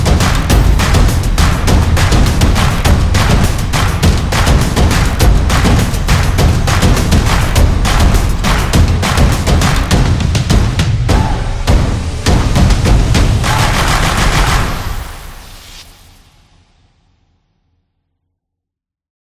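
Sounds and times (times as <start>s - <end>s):
Japanese style music: 0.0s - 15.2s.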